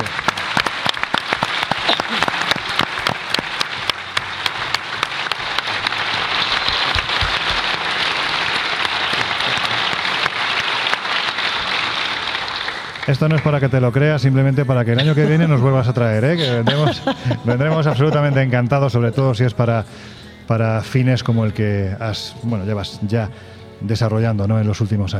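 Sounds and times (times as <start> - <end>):
audience applause at a Spanish-language event honoring an organizer: 0.0 - 14.2
laughter: 1.7 - 3.4, 5.7 - 10.6, 14.6 - 19.0
speech: 13.1 - 25.1.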